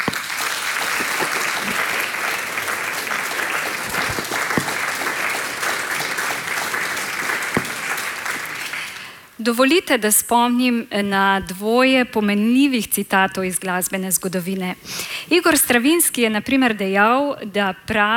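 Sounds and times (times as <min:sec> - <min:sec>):
audience applause: 0:00.0 - 0:09.2
speech: 0:09.4 - 0:18.1.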